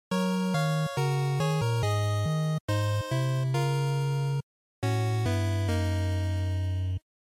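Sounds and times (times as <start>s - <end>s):
NES shooter game over chiptune music: 0.1s - 7.0s.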